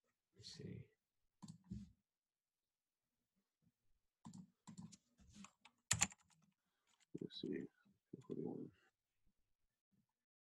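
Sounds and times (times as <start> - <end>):
speech: 0.4 - 0.9, 7.4 - 7.8
faint computer mouse clicking: 4.2 - 7.0.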